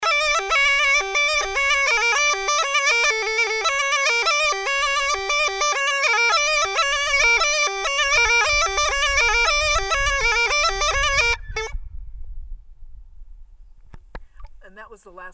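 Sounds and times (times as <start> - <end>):
gajda bagpipe playing: 0.0 - 11.8.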